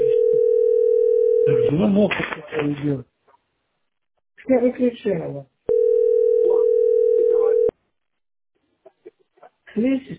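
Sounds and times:
telephone call ringing tone: 0.0s - 1.6s, 5.7s - 7.7s
speech: 1.5s - 3.1s, 4.4s - 5.5s, 9.8s - 10.1s.

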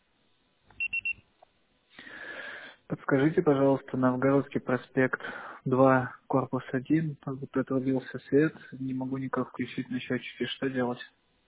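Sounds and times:
voicemail beep: 0.8s - 1.2s
speech: 3.1s - 11.2s.

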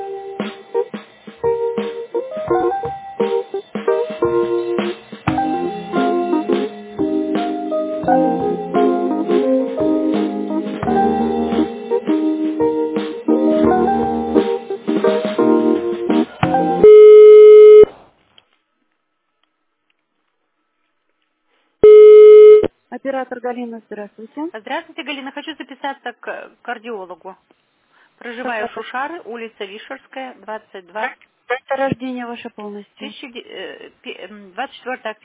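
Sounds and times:
tinny telephone hold melody: 0.0s - 17.0s
steady electronic telephone tone: 16.8s - 17.9s, 21.8s - 22.7s
speech: 23.5s - 27.6s, 28.2s - 35.2s.

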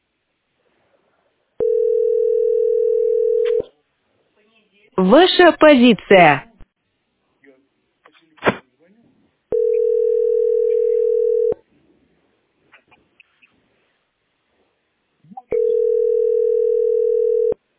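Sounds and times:
telephone dial tone: 1.6s - 3.6s, 9.5s - 11.6s, 15.5s - 17.6s
speech: 5.0s - 6.5s.

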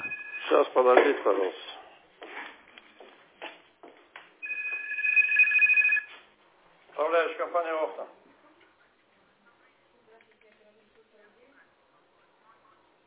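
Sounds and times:
second telephone ringing during a call: 0.0s - 0.8s, 4.4s - 6.2s
speech: 0.5s - 1.7s.

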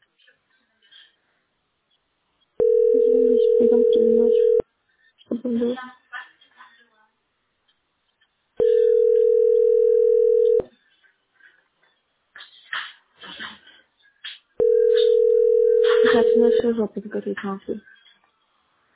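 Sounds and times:
telephone line beep: 2.6s - 4.6s, 8.6s - 10.6s, 14.6s - 16.5s
speech: 3.4s - 4.6s, 5.5s - 6.0s, 16.8s - 18.0s.

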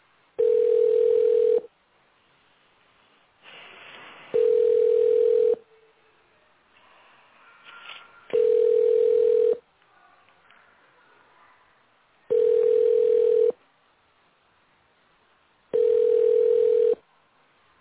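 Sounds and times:
faint noise: 0.0s - 17.7s
telephone ringback tone on an unanswered call: 0.4s - 1.7s, 4.4s - 5.6s, 8.3s - 9.6s, 12.3s - 13.6s, 15.7s - 17.0s.

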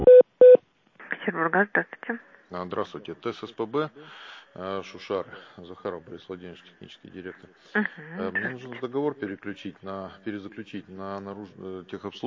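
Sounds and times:
short sharp beeps: 0.1s - 0.6s
telephone tones during a call transfer: 0.1s - 0.6s
speech: 1.5s - 12.2s.

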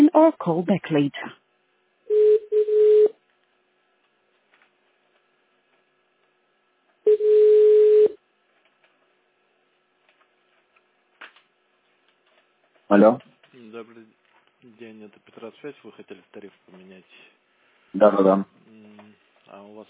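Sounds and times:
speech: 0.2s - 1.4s, 12.9s - 14.1s, 14.7s - 19.8s
telephone busy tone: 2.1s - 3.2s, 7.1s - 8.2s.

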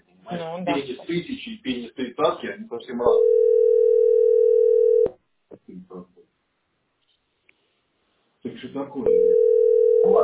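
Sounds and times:
speech: 0.3s - 3.8s, 5.6s - 6.2s, 8.4s - 10.2s
telephone ringback tone: 3.1s - 5.1s, 9.1s - 10.2s.

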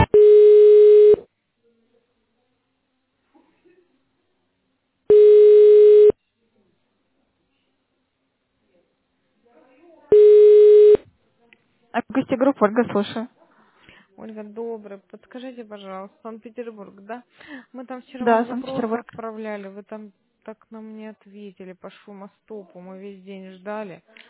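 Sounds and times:
telephone ringback tone while redialing: 0.1s - 1.2s, 5.1s - 6.2s, 10.2s - 11.0s
speech: 12.5s - 13.4s, 14.2s - 24.2s.

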